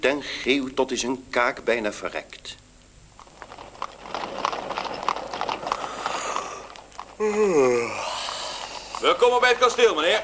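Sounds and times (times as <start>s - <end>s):
speech: 0.0s - 2.6s, 7.2s - 8.1s, 9.0s - 10.2s
horse-drawn carriage hooves clip-clopping: 3.0s - 10.2s.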